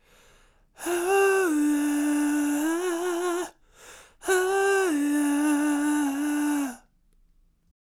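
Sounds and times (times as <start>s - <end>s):
soul vocal melodies in A minor: 0.8s - 6.8s.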